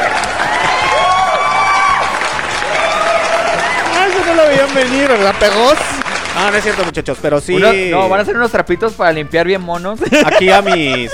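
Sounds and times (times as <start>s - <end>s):
applause and cheering: 0.0s - 7.0s
speech: 4.3s - 11.1s
laughter: 10.0s - 11.1s.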